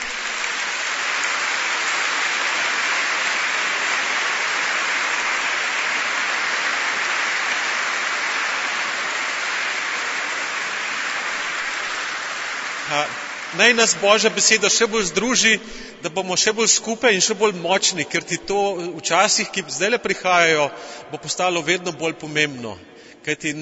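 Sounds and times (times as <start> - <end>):
crowd applauding: 0.0 - 16.2
speech: 13.6 - 23.6.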